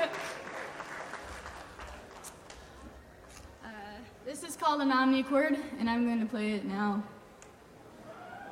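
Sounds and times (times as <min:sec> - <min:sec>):
audience clapping: 0:00.0 - 0:02.8
speech: 0:04.4 - 0:07.2.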